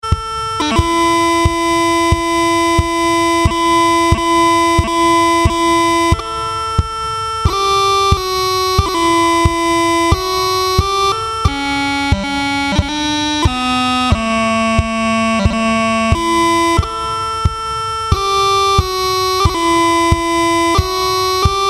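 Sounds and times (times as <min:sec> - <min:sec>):
pipes playing: 0:00.0 - 0:21.6.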